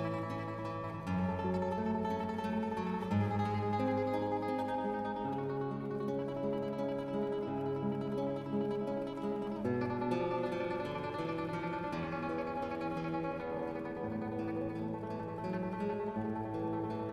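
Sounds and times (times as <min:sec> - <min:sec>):
guitar tremolo: 0:00.0 - 0:17.1.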